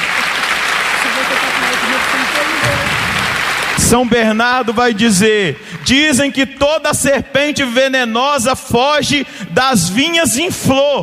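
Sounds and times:
audience applause: 0.0 - 6.1
speech: 3.9 - 11.0.

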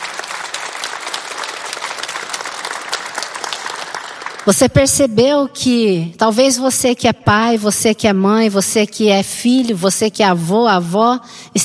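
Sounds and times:
audience applause: 0.0 - 4.5
speech: 4.4 - 11.6.

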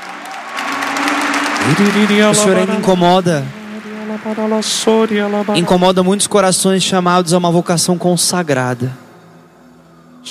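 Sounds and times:
people clapping: 0.0 - 7.6
speech: 1.7 - 3.6, 4.2 - 9.1.

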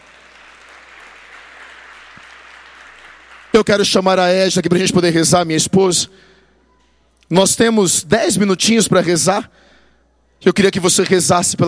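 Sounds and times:
audience applause: 0.0 - 3.9
speech: 3.6 - 6.3, 7.3 - 9.7, 10.4 - 11.6.

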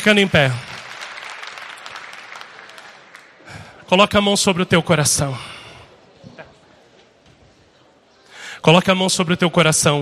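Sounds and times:
speech: 0.0 - 0.7, 3.9 - 5.6, 8.7 - 10.0
congregation applause during a Portuguese-language church service: 0.0 - 3.9.

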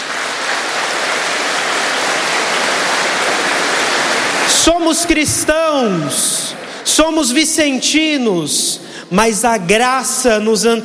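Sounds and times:
crowd applauding: 0.0 - 7.4
speech: 4.6 - 10.8.

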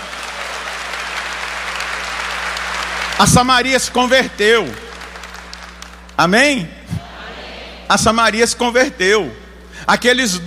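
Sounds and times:
church congregation applauding during a Portuguese-language service: 0.0 - 6.2
low electrical hum: 0.0 - 10.4
speech: 3.2 - 4.8, 6.2 - 6.8, 7.9 - 10.4.

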